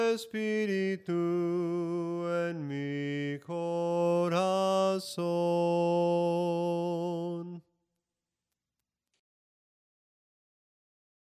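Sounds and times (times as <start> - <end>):
soprano singing hymn melodies: 0.0 - 7.6.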